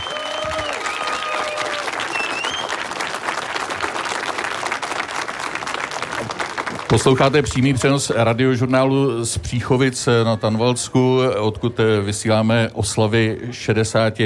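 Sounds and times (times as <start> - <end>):
audience applause: 0.0 - 8.0
speech: 6.9 - 14.2.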